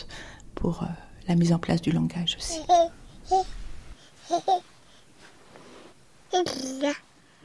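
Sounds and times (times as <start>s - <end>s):
speech: 0.6s - 3.6s, 4.3s - 4.7s, 6.3s - 7.1s
baby babbling: 2.5s - 3.5s, 4.2s - 4.6s, 6.3s - 7.0s.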